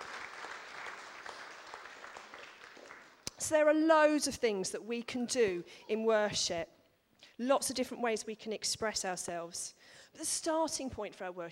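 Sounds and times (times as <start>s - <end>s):
audience clapping: 0.0s - 3.4s
speech: 3.4s - 6.8s, 7.4s - 11.5s.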